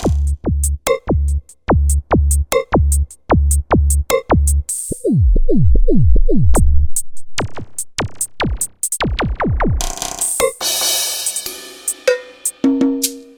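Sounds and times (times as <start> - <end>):
analog rhythm drum kit on Roland SRX-07: 0.0 - 13.3.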